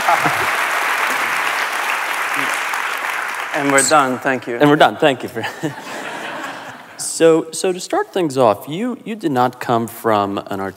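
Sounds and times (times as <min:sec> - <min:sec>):
laughter: 0:00.0 - 0:01.5, 0:05.2 - 0:07.0
audience applause: 0:00.0 - 0:04.6
speech: 0:00.1 - 0:00.4, 0:03.6 - 0:06.0, 0:07.2 - 0:10.7.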